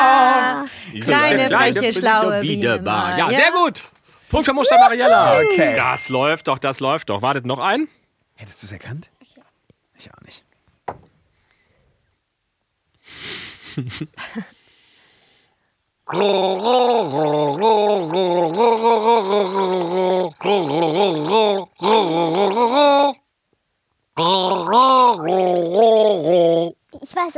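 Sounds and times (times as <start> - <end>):
speech: 1.0 - 9.1, 10.0 - 10.4, 13.2 - 14.6, 16.1 - 23.2, 24.2 - 27.3
person gargling a song tune: 16.1 - 23.2, 24.2 - 26.8.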